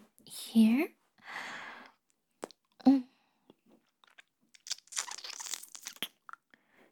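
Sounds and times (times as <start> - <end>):
speech: 0.5 - 1.0
soft mouth sounds: 2.4 - 6.5
crunchy bites and chewing of food: 3.6 - 6.5.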